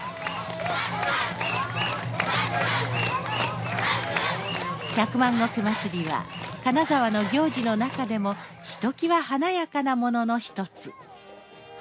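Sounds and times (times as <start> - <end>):
large street crowd applauding a parade: 0.0 - 8.8
speech: 5.0 - 11.0.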